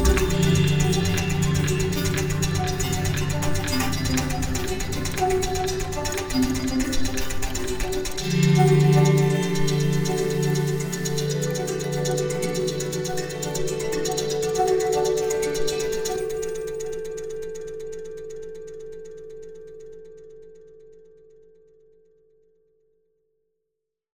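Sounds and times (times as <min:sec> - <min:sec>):
small canjo playing: 0:00.0 - 0:16.0.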